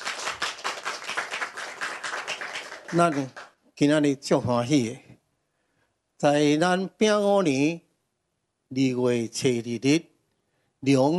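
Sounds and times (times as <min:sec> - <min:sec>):
audience clapping: 0:00.0 - 0:03.6
speech: 0:02.9 - 0:05.1, 0:06.2 - 0:07.8, 0:08.7 - 0:10.1, 0:10.8 - 0:11.1.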